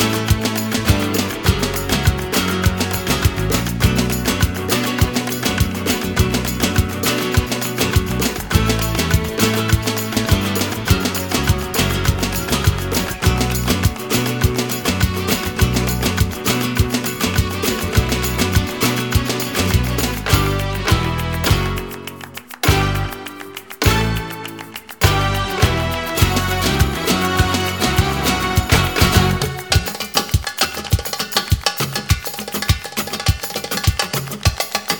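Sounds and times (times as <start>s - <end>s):
instrumental music: 0.0s - 34.9s.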